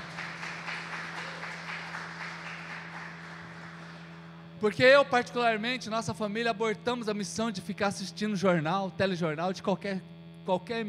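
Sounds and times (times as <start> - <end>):
audience applauding: 0.0 - 4.3
speech: 4.6 - 10.8.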